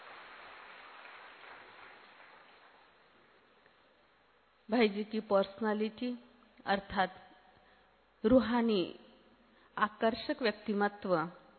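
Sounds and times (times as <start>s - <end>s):
audience applause: 0.0s - 3.2s
speech: 4.7s - 7.2s, 8.2s - 9.0s, 9.8s - 11.4s.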